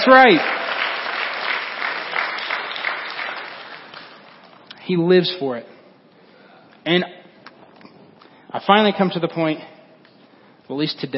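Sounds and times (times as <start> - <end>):
speech: 0.0 - 0.6, 4.9 - 5.7, 6.8 - 7.2, 8.5 - 9.7, 10.7 - 11.1
audience clapping: 0.0 - 4.7.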